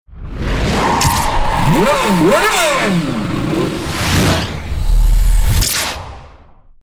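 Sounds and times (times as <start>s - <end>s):
speeding car: 0.5s - 5.5s.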